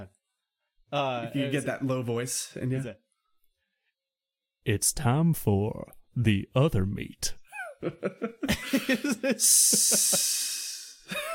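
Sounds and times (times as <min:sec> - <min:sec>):
speech: 0:00.9 - 0:03.0, 0:04.6 - 0:11.3
person chuckling rhythmically: 0:07.5 - 0:11.3
person laughing: 0:07.5 - 0:11.3
voice imitating a hiss: 0:09.4 - 0:11.1.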